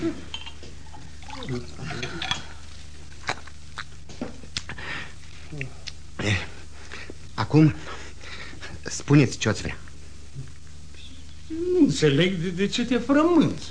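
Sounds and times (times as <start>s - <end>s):
speech: 0.0s - 0.3s, 1.5s - 2.2s, 7.5s - 8.0s, 9.1s - 9.8s, 11.9s - 13.6s
water poured into a glass: 0.9s - 2.5s
breathing: 4.7s - 5.2s, 6.7s - 7.2s, 7.8s - 8.8s.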